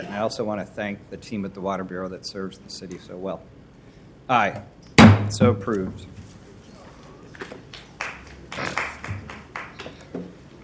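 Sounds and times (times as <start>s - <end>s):
faint hum: 0.0s - 10.6s
speech: 0.2s - 3.6s, 4.3s - 6.2s
one person clapping: 7.7s - 10.1s.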